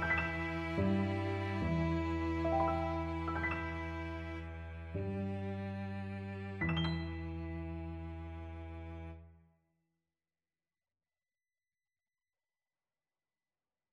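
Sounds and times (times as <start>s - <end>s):
piano quartet: 0.0s - 8.6s.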